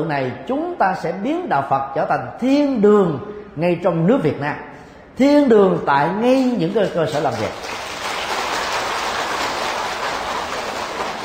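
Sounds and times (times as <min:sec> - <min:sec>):
speech: 0:00.0 - 0:07.8
audience applause: 0:07.3 - 0:11.2.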